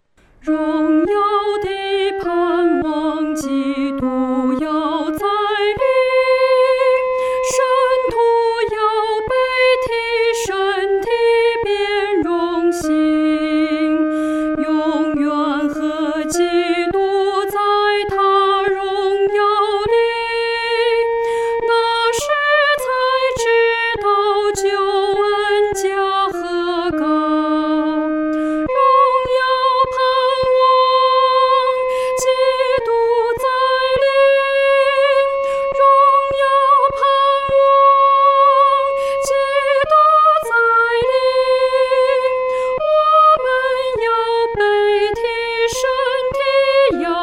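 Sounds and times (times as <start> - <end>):
solo singing: 0.4 - 47.2.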